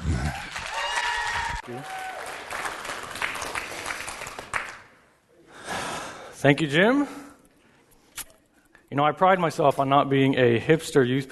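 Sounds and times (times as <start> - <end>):
audience applause: 0.0 - 5.0
speech: 1.7 - 2.1, 6.4 - 7.2, 8.9 - 11.3.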